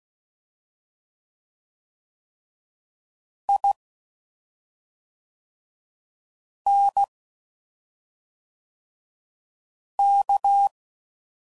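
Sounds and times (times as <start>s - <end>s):
CW Morse code groups at 5 WPM: 3.5s - 3.7s, 6.7s - 7.1s, 10.0s - 10.7s.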